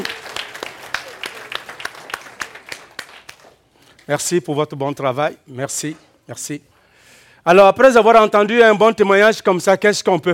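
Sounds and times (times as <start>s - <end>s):
audience applause: 0.0s - 3.6s
speech: 4.1s - 6.7s, 7.4s - 10.3s.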